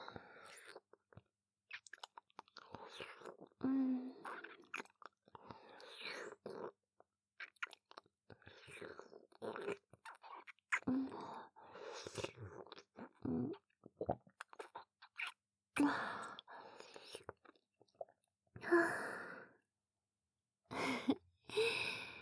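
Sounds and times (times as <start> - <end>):
person slurping and swallowing a thick, sticky liquid: 0.5 - 3.6, 4.2 - 6.8, 7.4 - 18.2
breathy sighs: 20.7 - 22.2.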